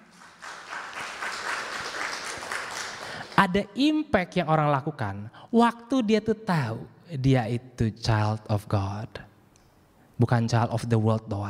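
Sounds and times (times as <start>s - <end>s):
audience applause: 0.0s - 3.4s
speech: 3.4s - 9.3s, 10.2s - 11.4s.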